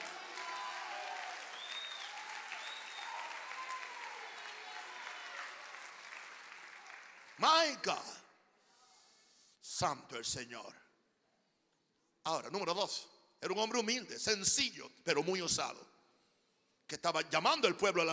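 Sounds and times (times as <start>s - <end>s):
audience applause: 0.0s - 7.7s
speech: 7.4s - 8.2s, 9.8s - 10.8s, 12.2s - 16.0s, 16.9s - 18.1s.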